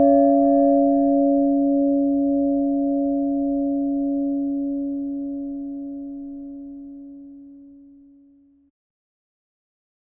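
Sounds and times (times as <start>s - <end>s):
bells: 0.0s - 8.0s.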